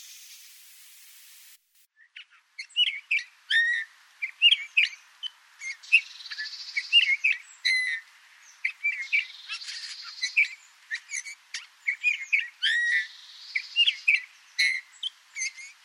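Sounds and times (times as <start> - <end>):
Eurasian bullfinch calling: 2.0 - 5.0, 5.6 - 8.0, 8.6 - 15.8.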